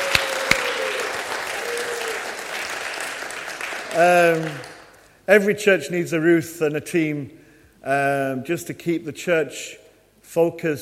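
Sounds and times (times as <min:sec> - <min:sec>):
church congregation applauding: 0:00.0 - 0:04.9
speech: 0:03.9 - 0:04.7, 0:05.3 - 0:10.8.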